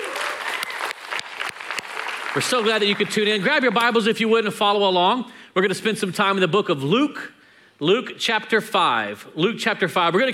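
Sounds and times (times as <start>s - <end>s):
audience applause: 0.0s - 3.4s
speech: 2.3s - 10.3s.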